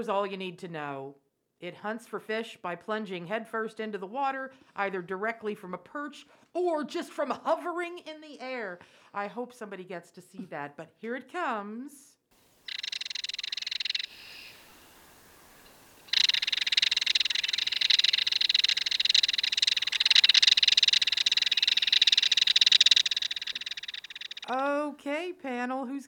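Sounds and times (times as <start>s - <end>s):
speech: 0.0s - 12.1s, 24.5s - 26.0s
belted kingfisher harsh dry rattle: 12.6s - 24.6s.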